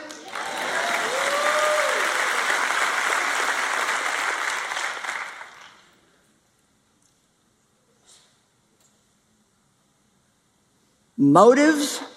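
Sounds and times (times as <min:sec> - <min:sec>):
audience applause: 0:00.0 - 0:06.0
speech: 0:11.2 - 0:12.1.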